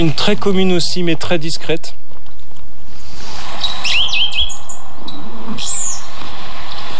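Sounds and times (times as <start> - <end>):
speech: 0.0 - 2.2
blue tit singing: 3.4 - 6.9.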